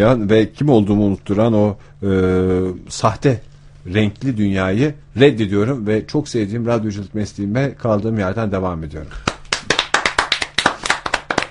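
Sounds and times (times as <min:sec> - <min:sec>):
speech: 0:00.0 - 0:09.3
hand clapping: 0:09.2 - 0:11.4.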